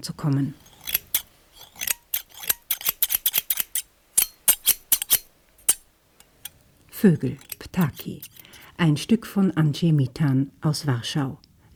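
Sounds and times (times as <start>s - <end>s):
speech: 0.0s - 0.6s, 7.0s - 11.7s
scissors cutting wire mesh: 0.7s - 6.6s, 7.2s - 8.6s.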